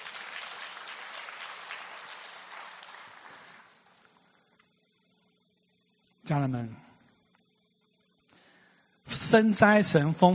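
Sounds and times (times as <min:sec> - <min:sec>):
audience applause: 0:00.0 - 0:03.9
speech: 0:06.3 - 0:06.9, 0:09.3 - 0:10.3.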